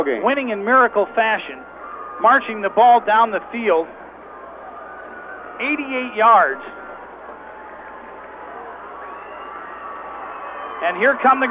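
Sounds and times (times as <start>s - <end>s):
speech: 0.0s - 4.0s, 5.6s - 6.8s, 10.8s - 11.4s
football fans yelling in the stands: 0.3s - 11.4s.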